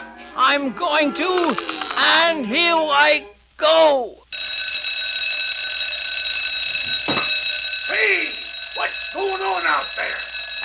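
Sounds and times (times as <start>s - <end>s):
speech: 0.4s - 4.2s, 8.0s - 10.6s
alarm clock ringing: 4.3s - 10.6s.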